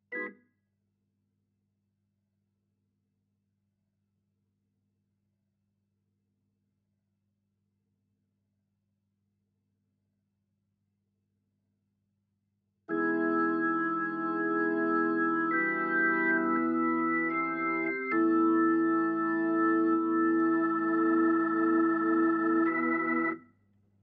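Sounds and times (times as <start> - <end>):
Hammond organ: 0.1 - 0.3, 12.9 - 23.4.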